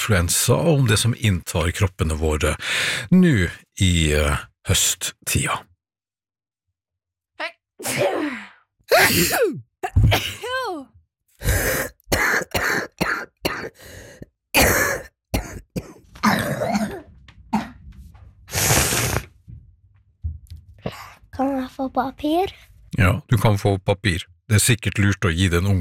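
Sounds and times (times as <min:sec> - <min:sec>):
speech: 0:00.0 - 0:05.7, 0:07.4 - 0:08.2, 0:08.9 - 0:12.8, 0:13.6 - 0:15.1, 0:20.9 - 0:25.7
person sneezing from a cold: 0:07.8 - 0:10.6, 0:18.5 - 0:19.3
person coughing from a cold: 0:07.8 - 0:10.7, 0:11.6 - 0:13.8, 0:14.6 - 0:17.8.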